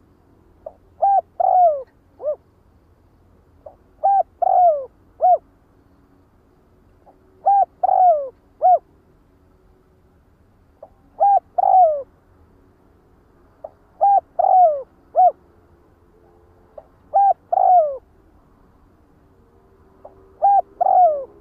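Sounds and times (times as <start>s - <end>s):
faint low hum: 0.0s - 21.3s
spotted dove cooing: 0.6s - 2.4s, 3.6s - 5.4s, 7.1s - 8.9s, 10.8s - 12.1s, 13.6s - 15.4s, 16.8s - 18.1s, 20.0s - 21.3s.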